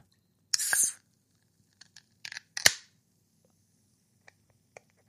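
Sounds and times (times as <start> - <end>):
beer can cracked open: 0.5 - 1.0, 2.2 - 2.9.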